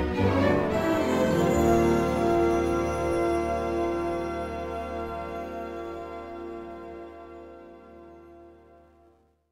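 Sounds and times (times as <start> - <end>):
musical sting for a quarry reveal: 0.1 - 6.4.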